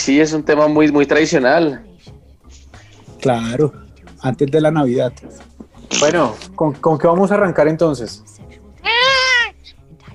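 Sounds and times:
speech: 0.0 - 2.2, 3.2 - 8.3
cat meowing: 8.8 - 9.6.

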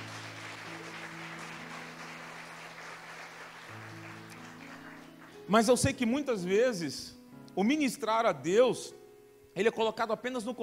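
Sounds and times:
audience applause: 0.0 - 5.4
speech: 5.5 - 9.0, 9.6 - 10.6.

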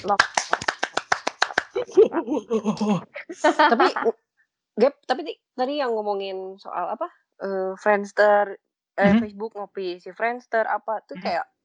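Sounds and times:
speech: 0.0 - 0.5, 1.8 - 4.2, 4.8 - 11.5
hand claps: 0.0 - 1.8.

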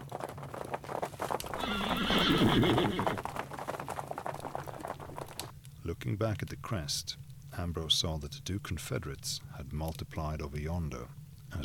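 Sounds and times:
cavalry horse hoofbeats clip-clopping: 0.0 - 5.6
cavalry horse whinny: 1.4 - 3.3
speech: 2.2 - 3.3, 5.9 - 11.6.

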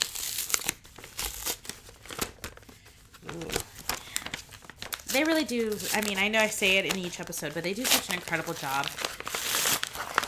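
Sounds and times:
fat manila envelope paper crinkling and tearing: 0.0 - 10.2
speech: 5.2 - 9.0.

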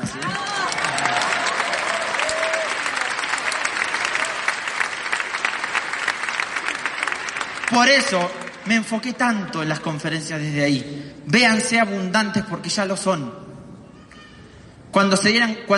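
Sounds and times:
audience applause: 0.0 - 8.8
speech: 7.7 - 13.4, 14.9 - 15.7.

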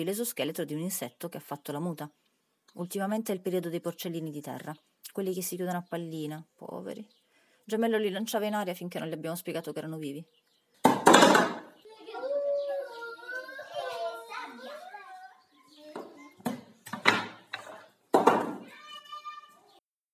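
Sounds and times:
speech: 0.0 - 10.4
mobile phone falling: 10.9 - 11.7, 18.2 - 18.7
child crying: 11.8 - 16.4, 18.6 - 19.7.

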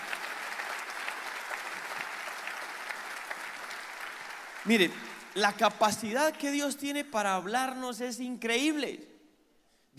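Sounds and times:
crowd applause: 0.0 - 5.4
speech: 4.6 - 9.1.

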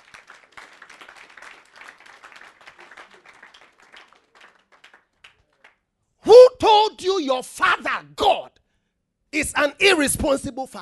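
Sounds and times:
audience clapping: 0.0 - 5.9
speech: 7.2 - 8.5, 9.4 - 10.7.

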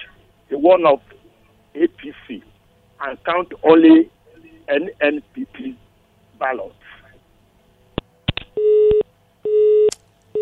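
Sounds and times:
speech: 0.6 - 1.2, 1.8 - 5.8, 6.4 - 7.0
telephone line tone pulses after a radio caller's connection drops: 8.6 - 10.4.

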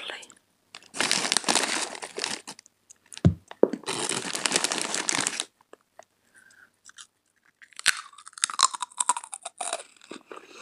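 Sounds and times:
person eating chips from a pack: 0.8 - 2.6, 3.8 - 5.5, 6.9 - 10.6
brief low thump: 3.3 - 3.8.

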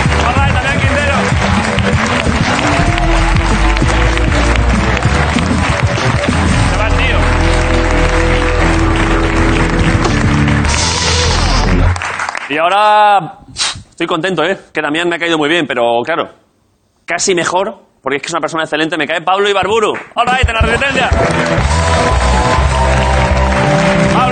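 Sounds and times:
tonal music layer: 0.0 - 12.0, 21.2 - 24.3
audience applause: 0.0 - 12.6, 20.3 - 24.3
speech: 12.5 - 13.4, 14.0 - 16.4, 17.1 - 22.2.

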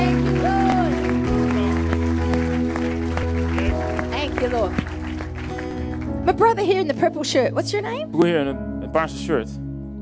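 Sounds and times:
church congregation clapping in praise: 0.0 - 6.5
speech: 6.3 - 9.6.

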